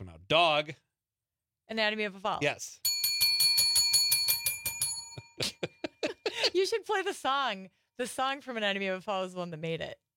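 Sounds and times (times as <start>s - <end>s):
speech: 0.3s - 0.9s, 1.7s - 2.9s, 6.6s - 10.0s
bicycle bell ringing: 2.8s - 5.5s.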